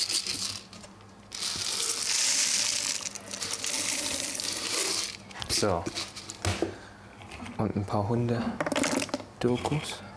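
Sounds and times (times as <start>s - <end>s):
dry oat flakes pouring into a hollow feeder toy: 1.3s - 5.2s
speech: 5.5s - 6.1s, 7.6s - 8.7s, 9.4s - 10.0s.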